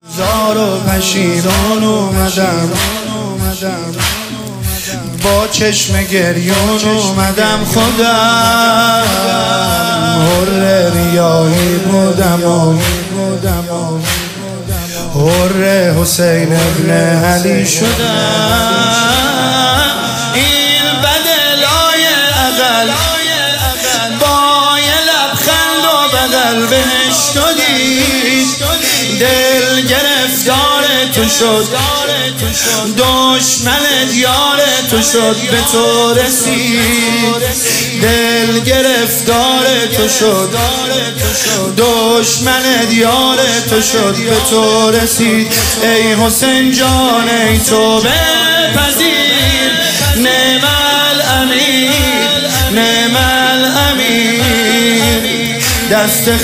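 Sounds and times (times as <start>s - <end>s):
devotional singing: 0.0s - 56.4s.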